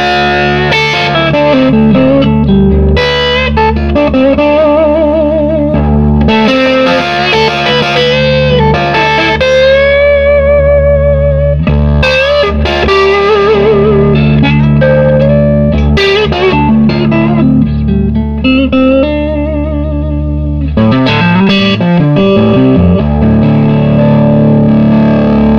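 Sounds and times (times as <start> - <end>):
overdriven Nocaster Telecaster electric guitar through Swart AST Pro amplifier: 0.0 - 25.5.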